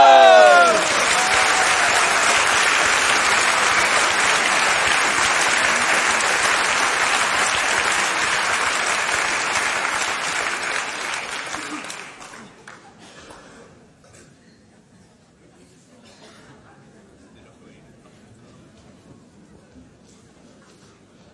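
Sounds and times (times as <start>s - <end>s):
audience applause: 0.1s - 12.9s.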